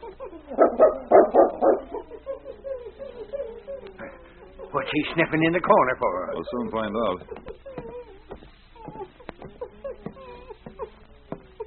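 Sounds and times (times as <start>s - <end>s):
dog barking: 0.5s - 2.1s
speech: 4.9s - 7.4s.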